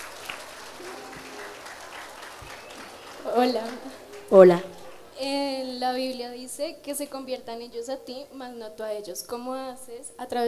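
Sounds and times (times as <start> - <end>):
audience applause: 0.0 - 5.2
speech: 3.3 - 10.4.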